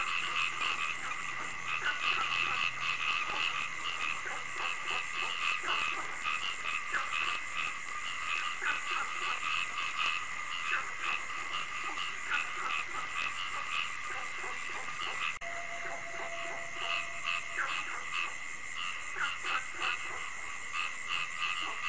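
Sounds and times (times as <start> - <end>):
many frogs croaking: 0.0 - 21.8.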